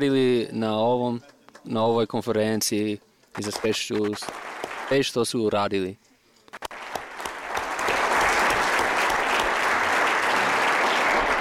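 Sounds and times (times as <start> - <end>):
speech: 0.0 - 6.6
conference audience applause: 3.4 - 5.1, 6.6 - 11.3.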